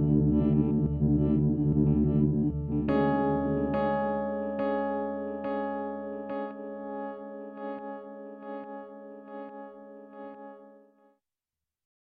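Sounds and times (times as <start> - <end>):
particle synth modulated by an LFO: 0.0 - 6.3.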